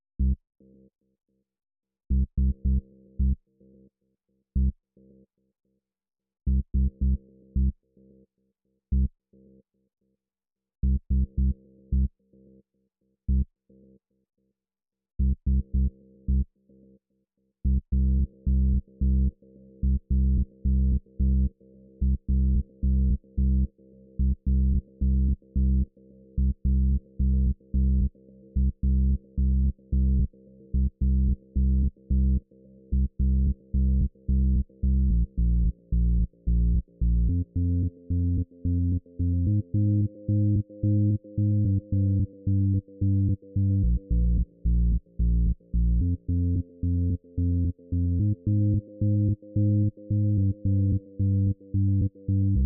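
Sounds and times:
bass: 0:00.0 - 0:00.4, 0:02.1 - 0:03.5, 0:04.6 - 0:04.8, 0:06.5 - 0:07.8, 0:08.9 - 0:09.2, 0:10.8 - 0:12.2, 0:13.3 - 0:13.5, 0:15.2 - 0:16.6, 0:17.6 - 0:52.6.

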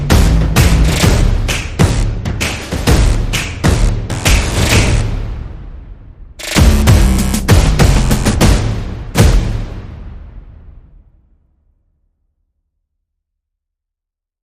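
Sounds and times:
percussion: 0:00.0 - 0:05.6, 0:06.4 - 0:10.1
bass: 0:00.0 - 0:10.1
sound effects: 0:00.0 - 0:10.9.

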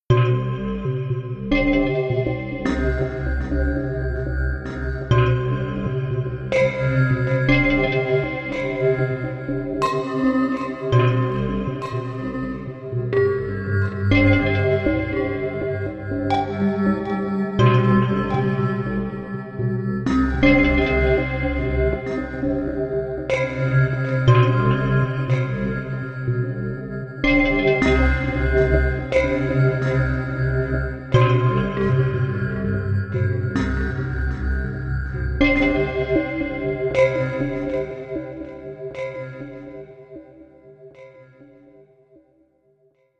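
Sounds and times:
gamelan: 0:00.1 - 0:26.2, 0:27.2 - 0:40.0.

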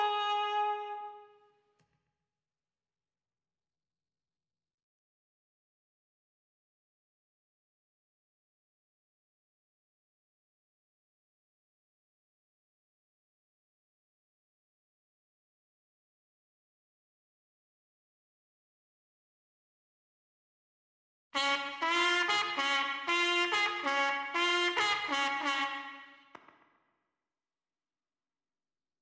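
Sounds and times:
trumpets: 0:00.0 - 0:01.4, 0:21.4 - 0:26.4.

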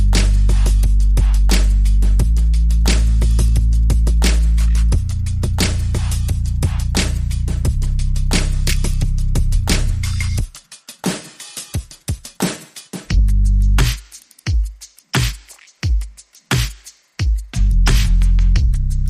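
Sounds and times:
bass: 0:00.0 - 0:10.5, 0:13.1 - 0:14.0, 0:17.6 - 0:19.0
drums: 0:00.0 - 0:19.0.

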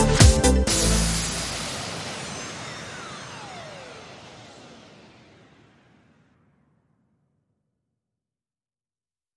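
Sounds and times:
sound effects mix without vocals: 0:00.2 - 0:06.8.

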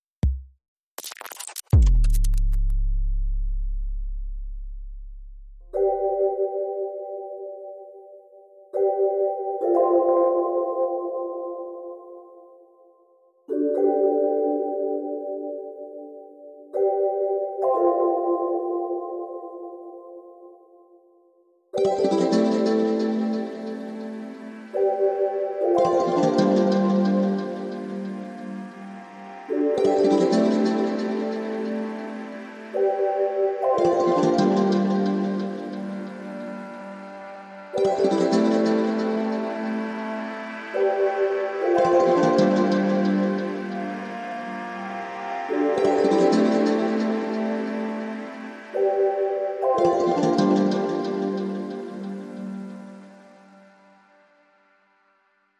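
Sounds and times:
music without drums or bass: 0:01.7 - 0:55.5.

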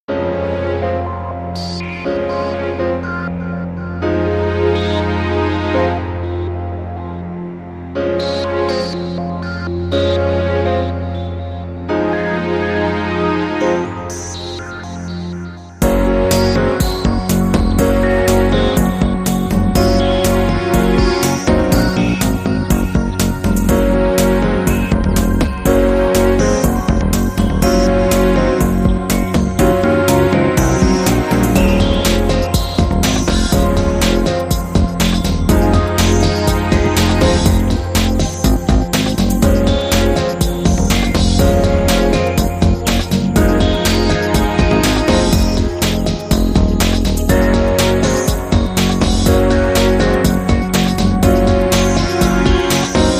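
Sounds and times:
electronic synthesizer: 0:00.0 - 0:53.1.

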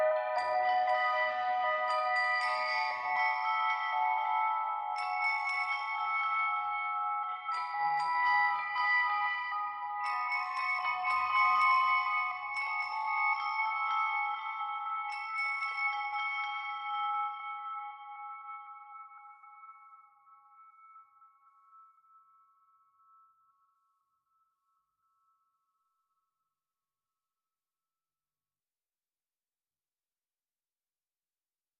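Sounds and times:
bells underscore: 0:00.1 - 0:23.6.

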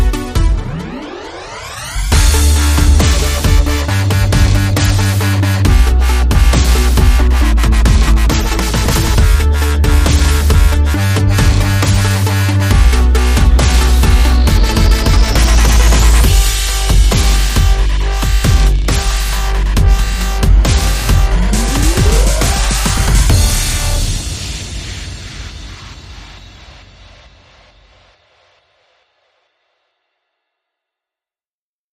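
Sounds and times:
synth intro: 0:00.2 - 0:25.6.

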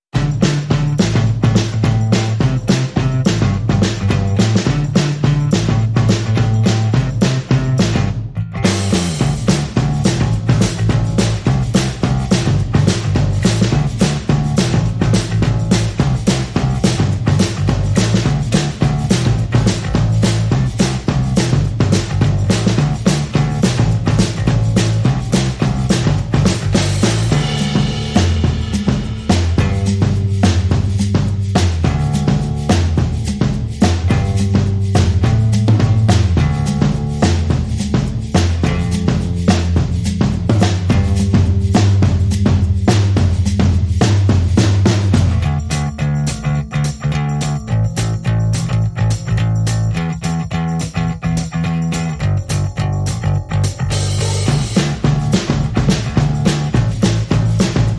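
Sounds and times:
bass: 0:00.0 - 0:57.9
drums: 0:00.0 - 0:57.9.

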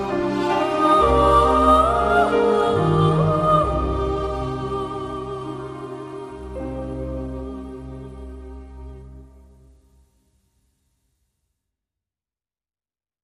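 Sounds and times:
soprano voice singing a melody: 0:00.0 - 0:09.4.

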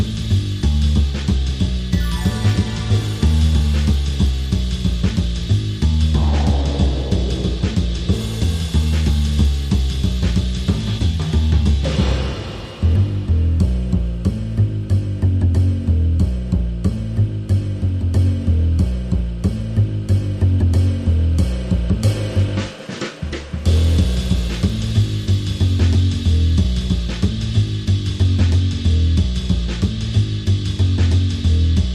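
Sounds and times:
bass: 0:00.0 - 0:31.9
drums: 0:00.0 - 0:31.9
sound effects: 0:01.9 - 0:04.5.

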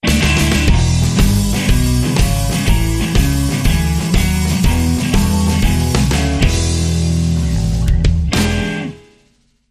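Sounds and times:
blues music: 0:00.0 - 0:09.6.

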